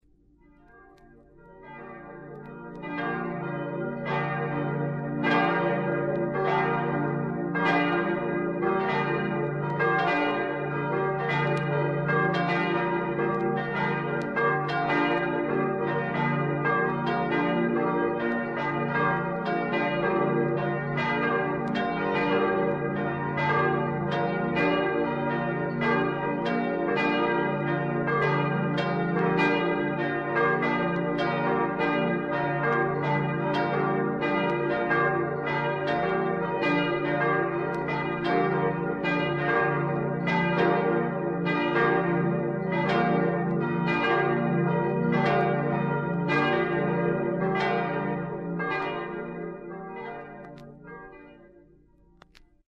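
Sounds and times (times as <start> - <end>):
St Nicolai church bells: 0.0 - 52.6.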